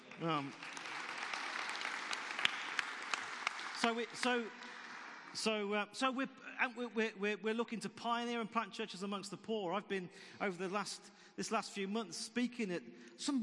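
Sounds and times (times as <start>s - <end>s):
audience clapping: 0.0s - 5.5s
speech: 0.2s - 0.7s, 3.8s - 4.7s, 5.3s - 13.4s.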